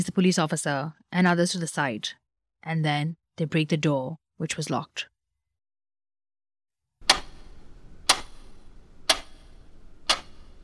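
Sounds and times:
speech: 0.0 - 5.1
clock ticking: 7.0 - 10.6
low quiet hiss: 7.0 - 10.6.

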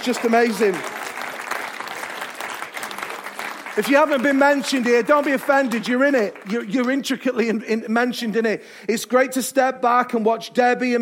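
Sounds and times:
speech: 0.0 - 0.9, 3.8 - 11.0
round of applause: 0.0 - 7.2.

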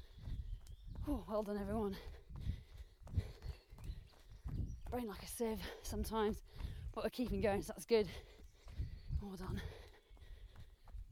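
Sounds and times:
footsteps of several people running: 0.0 - 11.1
speech: 1.1 - 2.5, 4.9 - 8.4, 9.2 - 9.8
breathy noise: 1.9 - 4.5, 5.6 - 7.0, 8.0 - 11.1.

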